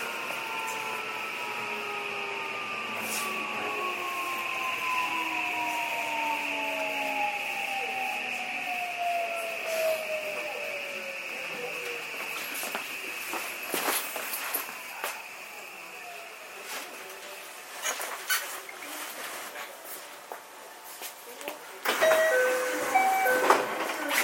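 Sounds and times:
JR 323 series train motor whine: 0.0 - 17.2, 21.9 - 24.1.

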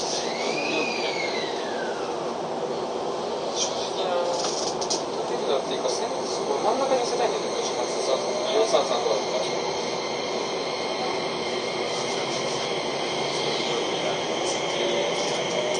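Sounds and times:
train motor whine: 0.0 - 2.2, 6.6 - 15.7
Keio 5000 series train running between Motoyawata and Hashimoto: 0.0 - 15.7
faint voices: 0.0 - 15.7.

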